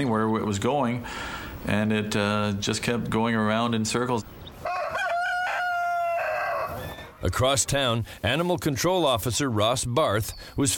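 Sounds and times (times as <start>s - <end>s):
speech: 0.0s - 4.4s, 7.2s - 10.7s
rooster crowing at a rural home: 4.6s - 7.1s.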